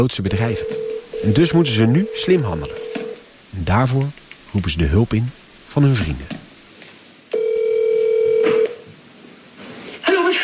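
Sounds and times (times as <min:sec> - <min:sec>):
speech: 0:00.0 - 0:02.8, 0:03.5 - 0:06.4
telephone ringing tone: 0:00.3 - 0:03.2, 0:07.3 - 0:08.8.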